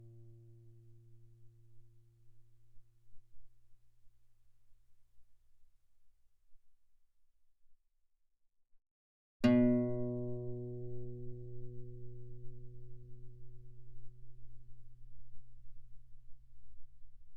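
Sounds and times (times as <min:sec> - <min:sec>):
guitar fortissimo on the A string: 0:09.5 - 0:13.1.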